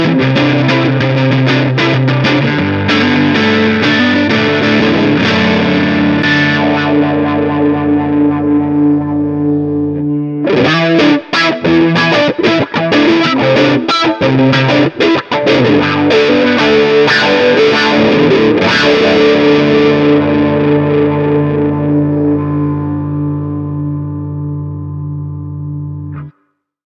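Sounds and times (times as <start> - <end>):
electric guitar through a multi-effects processor: 0.0 - 26.5.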